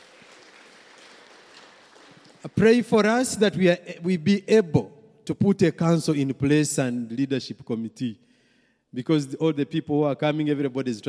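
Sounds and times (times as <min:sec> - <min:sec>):
audience clapping: 0:00.0 - 0:02.8
speech: 0:02.4 - 0:08.3, 0:08.9 - 0:11.0.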